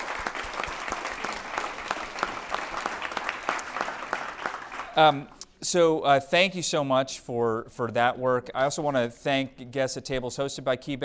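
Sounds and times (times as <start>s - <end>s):
crowd applauding: 0.0s - 5.4s
speech: 5.0s - 11.0s.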